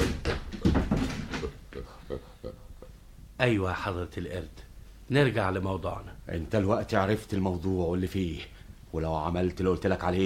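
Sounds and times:
door being shut in an Arabic radio drama: 0:00.0 - 0:01.5
speech: 0:03.4 - 0:10.2.

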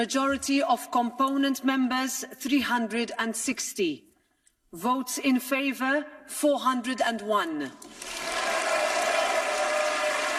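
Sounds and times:
speech: 0:00.0 - 0:04.1, 0:04.7 - 0:08.4
applause in parliament after Ursula von der Leyen re-elected: 0:07.8 - 0:10.3.

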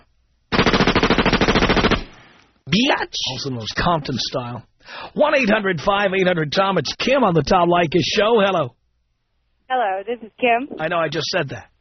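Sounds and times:
machine gun fire sound effect: 0:00.5 - 0:02.4
speech: 0:02.7 - 0:08.8, 0:09.7 - 0:11.7.

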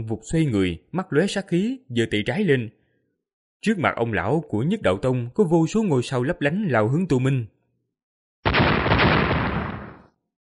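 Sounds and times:
speech: 0:00.0 - 0:02.8, 0:03.6 - 0:07.6
deafening explosion sound effect: 0:08.5 - 0:10.1.

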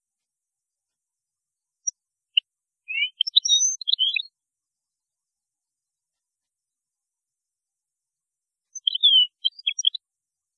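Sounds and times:
European goldfinch singing: 0:02.9 - 0:04.3, 0:08.7 - 0:10.0.

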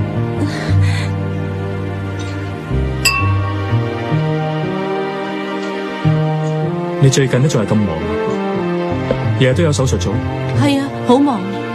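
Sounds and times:
steady sustained music with slowly shifting notes: 0:00.0 - 0:11.7
glasses clinking in a toast to the future: 0:03.1 - 0:04.0
speech: 0:07.0 - 0:08.3, 0:09.4 - 0:11.4.

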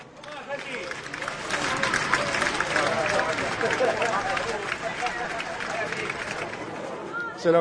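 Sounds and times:
studio applause: 0:00.2 - 0:07.0
laughter: 0:01.9 - 0:06.6.

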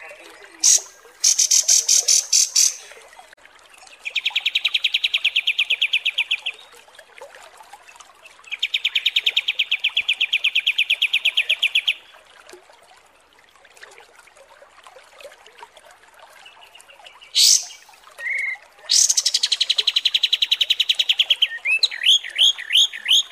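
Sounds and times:
kapas tembak song with rapid chirps: 0:00.6 - 0:02.9, 0:04.0 - 0:06.7, 0:08.5 - 0:12.0, 0:16.4 - 0:23.2.

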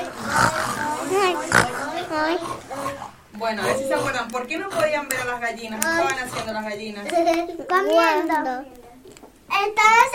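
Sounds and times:
children imitating pigs oinking: 0:00.0 - 0:04.2
children chattering: 0:00.0 - 0:10.1
speech: 0:02.2 - 0:08.8, 0:09.6 - 0:10.1.

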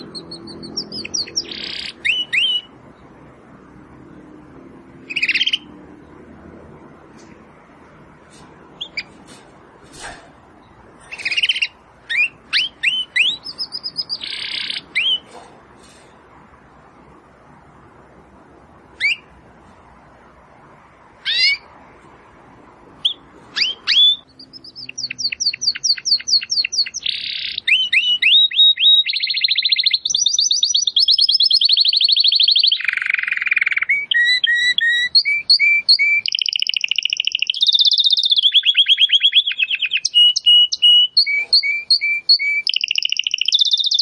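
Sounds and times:
domestic canary singing trills and whistles: 0:00.0 - 0:02.7, 0:05.1 - 0:05.7, 0:11.1 - 0:15.3, 0:23.0 - 0:43.9.

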